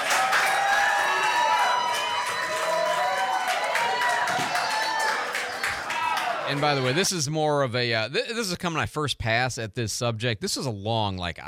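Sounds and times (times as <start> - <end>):
crowd cheering after a vote: 0.0 - 7.3
speech: 6.5 - 11.4.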